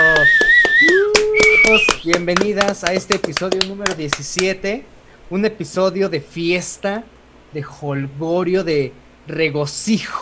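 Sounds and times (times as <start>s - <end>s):
loud sustained whistles: 0.0s - 2.2s
people clapping: 0.0s - 4.5s
speech: 2.1s - 10.2s.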